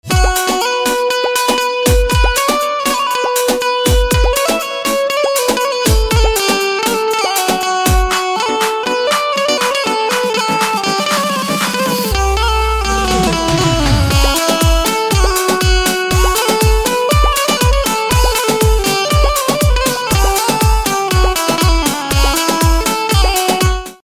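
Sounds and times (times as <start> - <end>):
banjo instrumental ringtone: 0.1 - 23.7.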